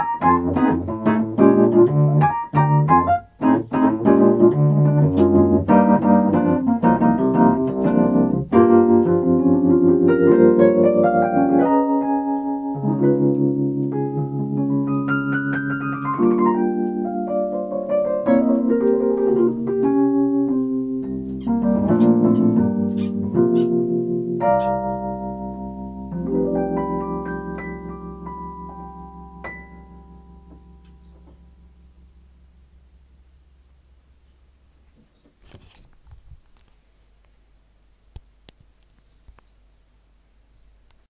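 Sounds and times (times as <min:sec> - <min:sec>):
Wurlitzer electric piano installed in studio: 0:00.0 - 0:32.7.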